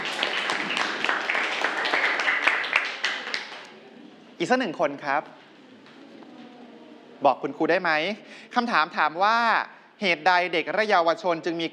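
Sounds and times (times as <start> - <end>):
classroom applause: 0.0 - 3.8
speech: 4.4 - 5.4, 7.2 - 11.7.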